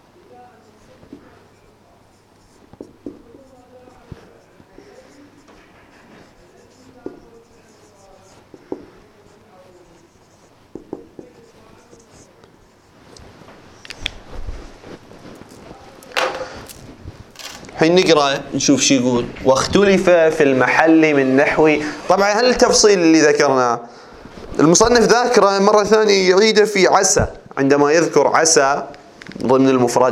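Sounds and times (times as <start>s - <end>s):
pen or chalk writing strokes: 0.3s - 16.2s
speech: 17.8s - 24.0s, 24.6s - 30.1s.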